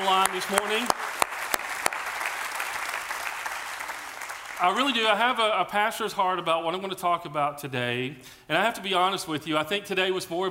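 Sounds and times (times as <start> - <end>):
speech: 0.0 - 1.1, 4.6 - 10.4
church congregation applauding during a morning service: 0.0 - 5.4.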